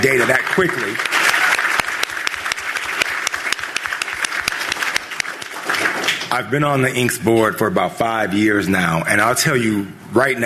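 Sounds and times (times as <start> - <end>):
speech: 0.0 - 1.2, 6.3 - 10.4
audience round of applause: 0.0 - 6.3.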